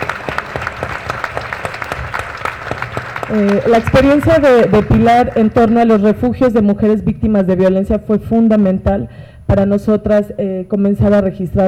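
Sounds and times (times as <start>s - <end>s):
audience applause: 0.0s - 6.1s
speech: 3.3s - 11.6s.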